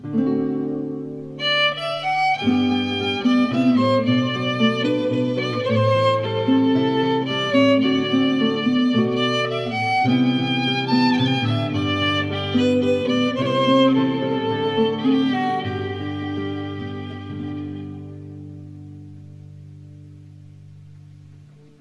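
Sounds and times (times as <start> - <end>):
Bearnais arpeggio played: 1.4 - 18.2.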